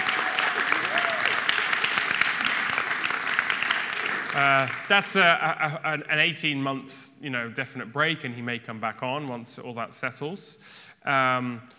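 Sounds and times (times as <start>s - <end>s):
audience applause: 0.0s - 5.1s
speech: 4.4s - 11.7s.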